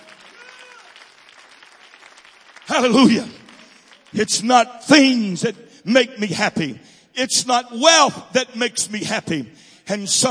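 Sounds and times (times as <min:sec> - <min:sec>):
audience clapping hands: 0:00.0 - 0:05.2
speech: 0:02.7 - 0:03.4, 0:04.1 - 0:10.2.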